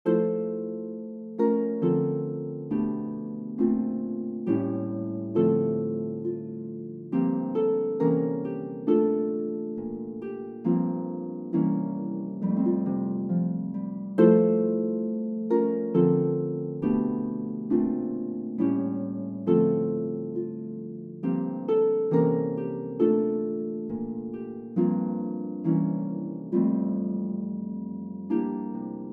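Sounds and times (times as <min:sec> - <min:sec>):
MIDI Christmas carol: 0:00.0 - 0:29.1.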